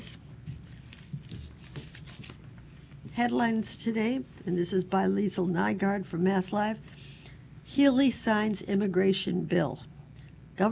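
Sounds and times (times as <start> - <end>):
paper crinkling: 0.6 - 2.5
speech: 3.2 - 6.9, 7.8 - 9.9.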